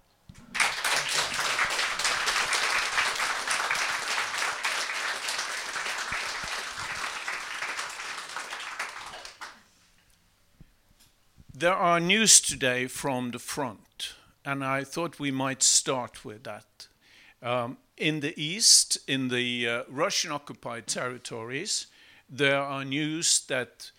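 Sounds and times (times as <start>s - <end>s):
audience applause: 0.4s - 9.6s
speech: 11.6s - 23.9s.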